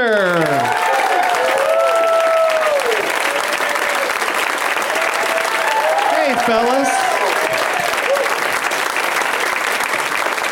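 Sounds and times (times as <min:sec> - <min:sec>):
studio audience whoops and cheers: 0:00.0 - 0:04.2, 0:04.8 - 0:08.4
studio audience applause welcoming three guests on a comedy show: 0:00.0 - 0:10.5
speech: 0:06.5 - 0:06.9.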